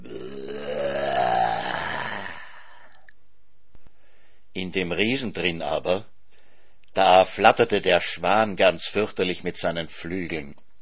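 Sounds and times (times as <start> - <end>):
voice imitating a giant's loud drawn-out burp: 0.0 - 3.1
speech: 4.7 - 6.1, 7.0 - 10.6.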